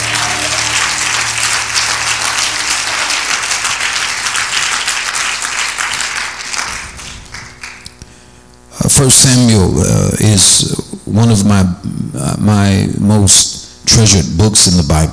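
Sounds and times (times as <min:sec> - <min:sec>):
people clapping: 0:00.0 - 0:08.0
speech: 0:09.0 - 0:15.1.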